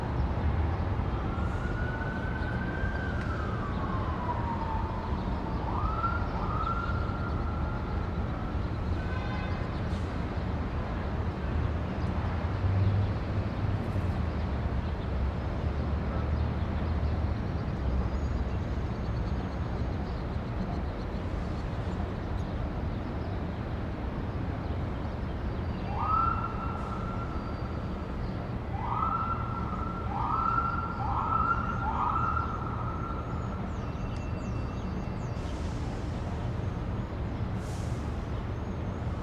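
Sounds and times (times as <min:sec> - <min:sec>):
cars on busy streets in downtown LA: 0:00.0 - 0:39.2
sirens in downtown LA Pershing Square: 0:00.9 - 0:09.5, 0:25.8 - 0:36.1.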